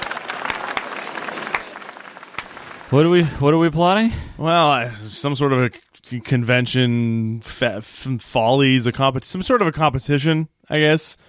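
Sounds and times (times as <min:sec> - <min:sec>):
slow clap: 0:00.0 - 0:02.9
speech: 0:02.9 - 0:11.2.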